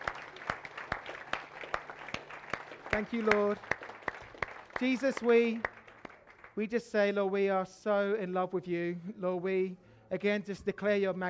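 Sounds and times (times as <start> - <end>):
audience applause: 0.0 - 6.6
speech: 2.9 - 3.7, 4.8 - 5.7, 6.6 - 11.2.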